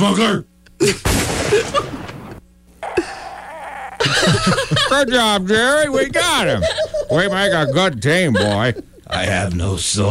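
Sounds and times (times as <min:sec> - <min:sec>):
speech: 0:00.0 - 0:02.1, 0:04.0 - 0:10.0
gunshot in a cartoon scene: 0:01.0 - 0:02.3
laughter: 0:04.0 - 0:09.5.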